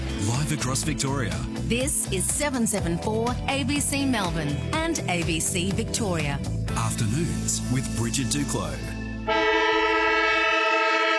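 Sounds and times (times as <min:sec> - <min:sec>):
speech: 0:00.5 - 0:09.4
football ground siren: 0:09.3 - 0:11.1.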